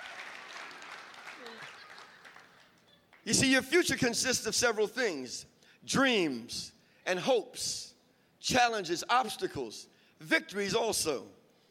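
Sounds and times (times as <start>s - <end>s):
single person hand clapping: 0.0s - 3.2s
speech: 3.2s - 11.4s.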